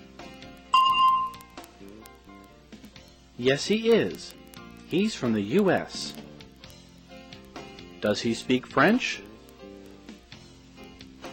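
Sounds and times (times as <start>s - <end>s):
bell ringing: 0.8s - 1.4s
speech: 3.4s - 6.2s, 8.0s - 9.3s.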